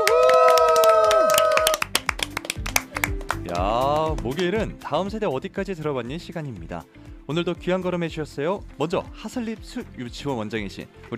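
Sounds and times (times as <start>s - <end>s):
audience clapping: 0.0s - 4.6s
speech: 4.2s - 11.1s.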